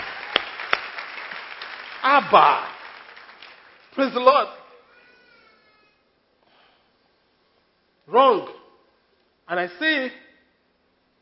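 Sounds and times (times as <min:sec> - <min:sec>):
crowd audience clapping: 0:00.0 - 0:04.5
speech: 0:02.0 - 0:02.7, 0:04.0 - 0:04.6, 0:08.1 - 0:08.6, 0:09.5 - 0:10.2.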